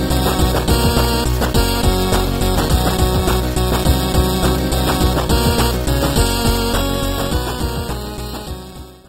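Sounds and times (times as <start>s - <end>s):
8-bit music for mobile phone ringtones: 0.0s - 9.0s.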